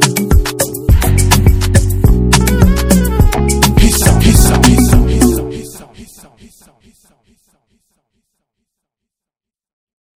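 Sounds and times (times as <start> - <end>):
instrumental music: 0.0 - 6.2.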